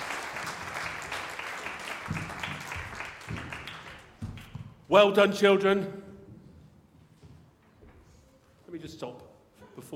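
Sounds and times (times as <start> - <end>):
audience applause: 0.0 - 4.2
speech: 4.9 - 6.0.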